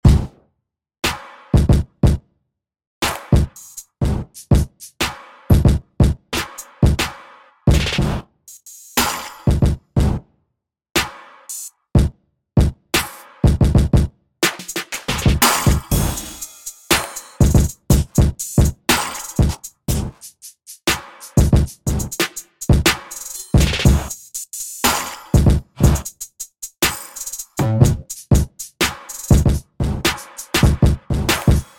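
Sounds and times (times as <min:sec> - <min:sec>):
music beat: 0:00.0 - 0:00.4, 0:01.1 - 0:02.2, 0:03.0 - 0:10.2, 0:11.0 - 0:31.7.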